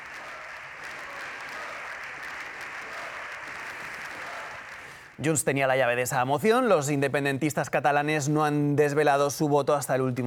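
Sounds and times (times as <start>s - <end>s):
dense applause in parliament chamber: 0.0s - 6.0s
speech: 5.2s - 10.2s.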